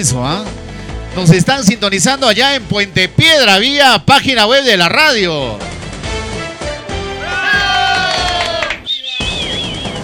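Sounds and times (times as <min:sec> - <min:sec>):
speech: 0:00.0 - 0:00.6, 0:01.2 - 0:05.7
audience applauding: 0:07.1 - 0:10.0
crowd cheering and shouting: 0:07.1 - 0:10.0
high wavering whistle: 0:08.8 - 0:10.0.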